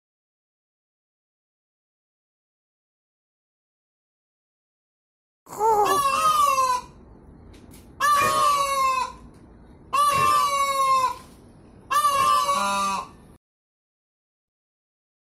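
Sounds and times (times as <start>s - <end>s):
peahen wailing honks: 5.8s - 7.0s, 8.0s - 9.3s, 9.9s - 11.3s, 11.9s - 13.2s.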